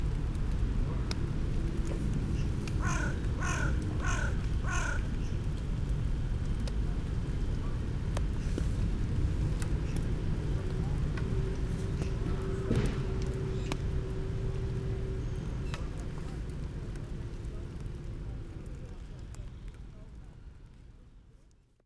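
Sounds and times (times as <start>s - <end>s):
rain: 0.0s - 21.8s
goose vocalisations: 2.4s - 5.1s.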